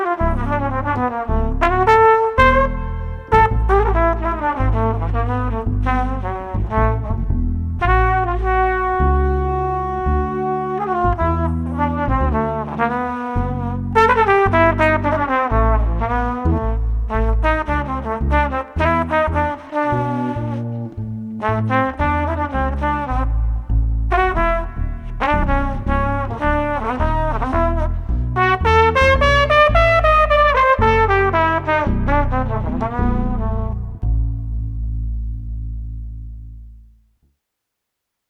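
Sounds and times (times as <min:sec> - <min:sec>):
bass trumpet: 0:00.0 - 0:37.1.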